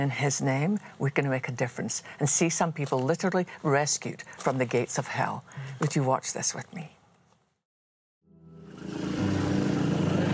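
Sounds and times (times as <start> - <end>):
speech: 0.0 - 7.0
tuk-tuk engine in a red light district in Southeast Asia: 8.6 - 10.3.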